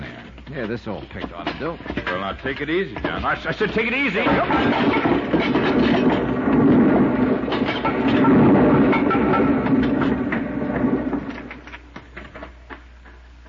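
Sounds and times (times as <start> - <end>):
rock pile collapsing into rubble: 0.0 - 13.2
speech: 0.5 - 6.8.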